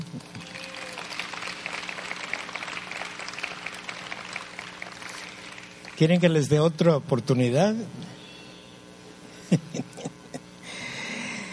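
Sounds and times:
audience applause: 0:00.2 - 0:06.2
speech: 0:06.0 - 0:08.1
laughter: 0:09.4 - 0:10.5.

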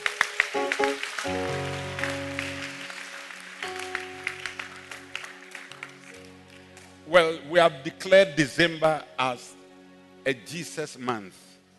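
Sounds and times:
audience clapping: 0:00.0 - 0:07.1
speech: 0:00.5 - 0:01.5, 0:07.1 - 0:09.6, 0:10.2 - 0:11.5.

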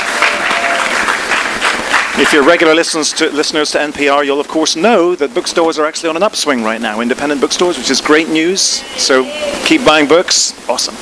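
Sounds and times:
crowd applause and cheering: 0:00.0 - 0:03.6
speech: 0:02.2 - 0:11.0.

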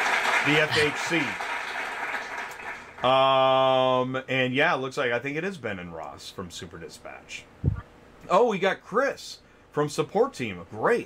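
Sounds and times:
crowd applause: 0:00.0 - 0:03.2
speech: 0:00.4 - 0:01.4, 0:03.0 - 0:11.0.

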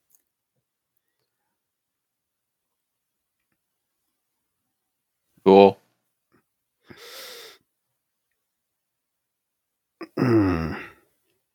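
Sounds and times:
suppressed yawn: 0:10.0 - 0:11.1.

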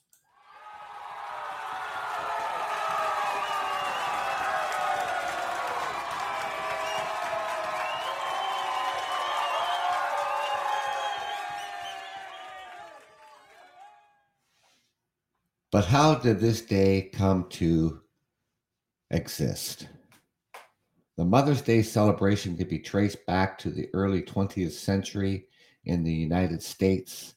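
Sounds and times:
crowd cheering: 0:00.0 - 0:14.2
speech: 0:15.8 - 0:18.0, 0:19.1 - 0:20.0, 0:21.2 - 0:27.3.

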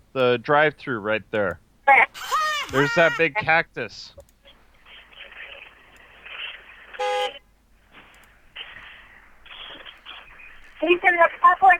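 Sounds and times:
speech: 0:00.2 - 0:04.2, 0:10.8 - 0:11.7
car horn honking outside a library: 0:07.0 - 0:07.4.

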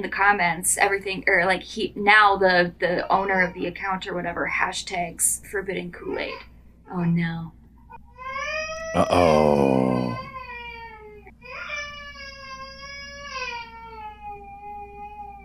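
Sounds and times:
speech: 0:00.0 - 0:07.6, 0:08.9 - 0:10.3
one-year-old baby crying after waking up: 0:08.2 - 0:15.4.

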